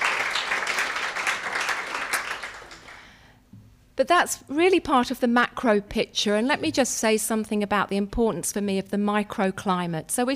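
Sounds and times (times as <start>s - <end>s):
crowd applause: 0.0s - 3.2s
speech: 4.0s - 10.3s.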